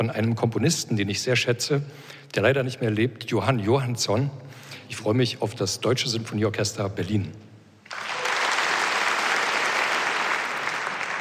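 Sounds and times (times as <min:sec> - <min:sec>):
speech: 0:00.0 - 0:08.0
audience applause: 0:07.9 - 0:11.1.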